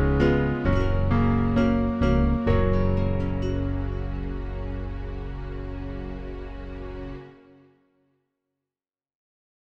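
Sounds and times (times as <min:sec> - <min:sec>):
backing track music: 0:00.0 - 0:07.7.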